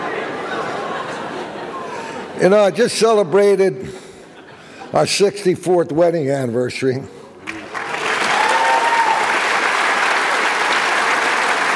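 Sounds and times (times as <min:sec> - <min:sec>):
laughter: 0:00.0 - 0:02.4
speech: 0:02.4 - 0:04.0, 0:04.9 - 0:07.2
audience applause: 0:07.4 - 0:11.7.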